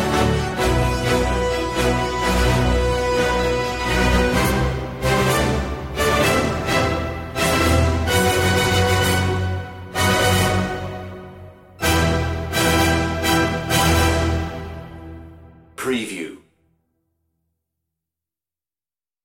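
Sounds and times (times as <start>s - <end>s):
strings: 0.0s - 15.3s
brass: 0.0s - 16.4s.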